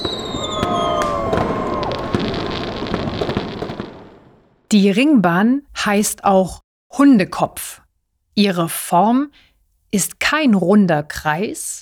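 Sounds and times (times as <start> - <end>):
high whistling tones of fireworks: 0.0 - 3.1
New Year's Eve fireworks crackling and popping: 0.0 - 4.7
speech: 4.7 - 7.8, 8.4 - 11.7.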